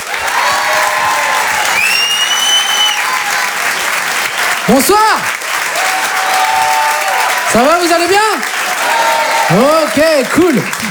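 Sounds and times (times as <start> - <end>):
comedy club audience applauding: 0.0 - 10.9
shrill whistle: 1.6 - 4.6
speech: 4.7 - 5.4, 7.5 - 8.6, 9.5 - 10.9.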